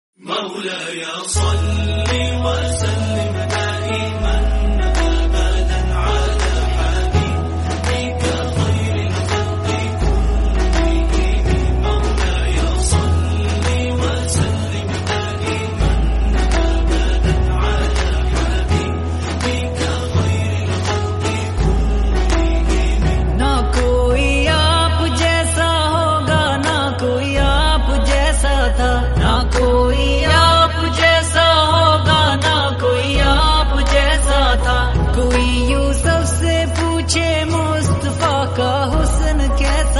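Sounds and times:
naat devotional singing: 0.2 - 39.9.

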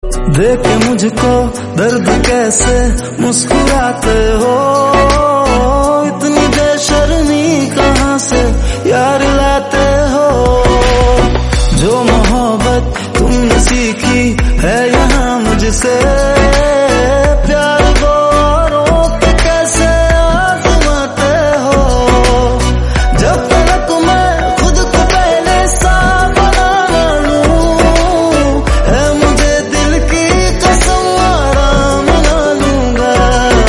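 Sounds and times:
sad Hindi song: 0.0 - 33.6.

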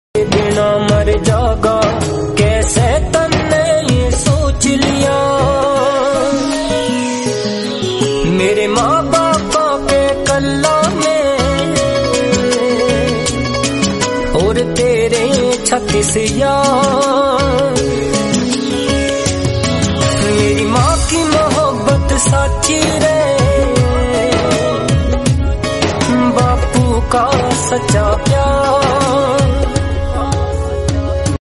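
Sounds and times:
Haryanvi song: 0.2 - 31.3.

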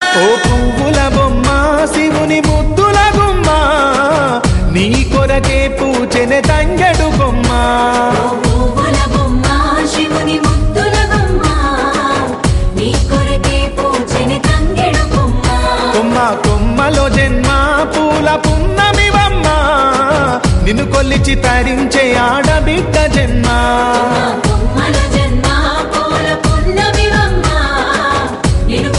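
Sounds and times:
Telugu bathukamma folk song: 0.0 - 28.9.

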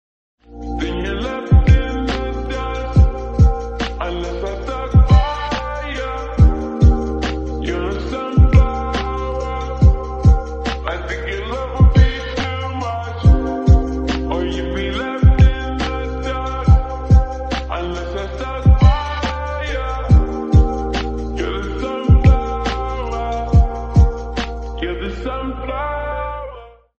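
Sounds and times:
lofi music: 0.4 - 26.6.

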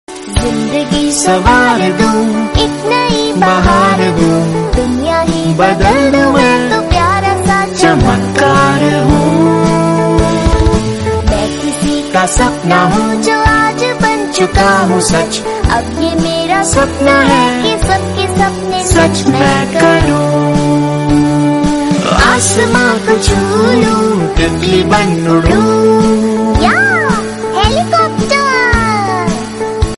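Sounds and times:
kids cartoon theme song: 0.1 - 29.9.

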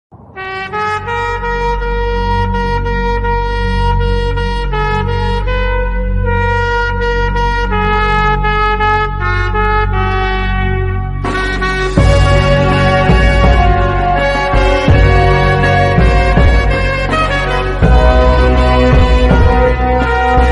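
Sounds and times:
instrumental national anthem: 0.4 - 20.5.

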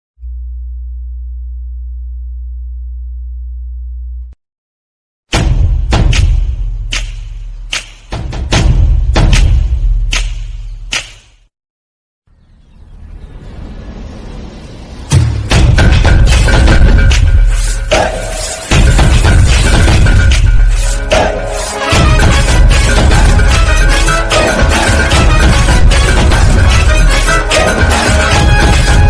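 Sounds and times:
background music: 5.3 - 11.4, 13.1 - 29.0.

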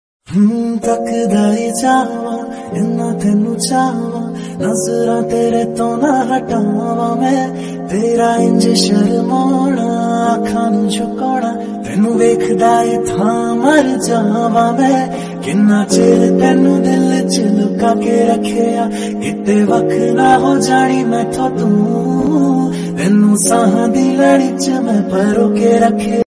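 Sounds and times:
Punjabi music: 0.3 - 26.2.

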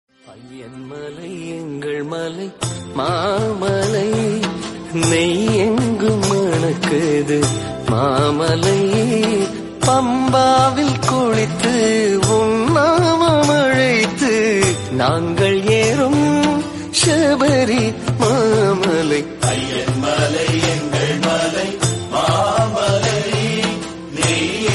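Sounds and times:
Tamil devotional music: 0.1 - 24.7.

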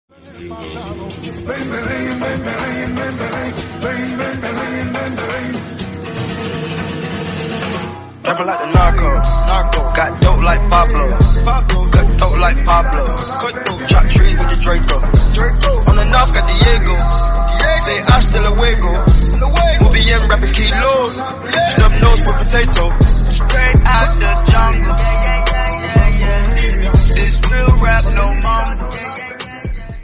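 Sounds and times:
Punjabi remix music: 0.1 - 30.0.

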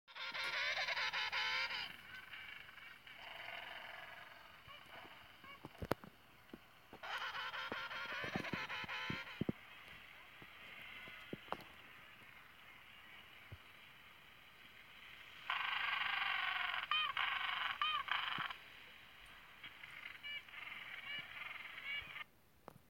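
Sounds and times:
penguin calling: 0.1 - 12.3, 15.4 - 18.6, 19.5 - 22.3.

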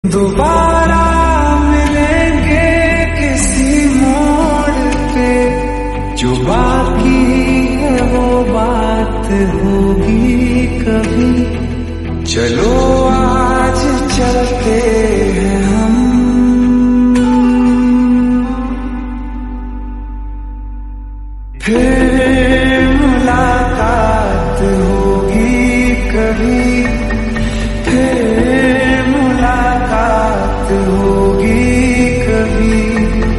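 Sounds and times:
slowed reverb music: 0.0 - 33.3.

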